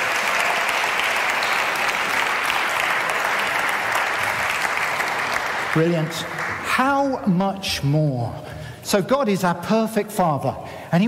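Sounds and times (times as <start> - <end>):
audience applause: 0.0 - 6.8
speech: 5.8 - 11.0.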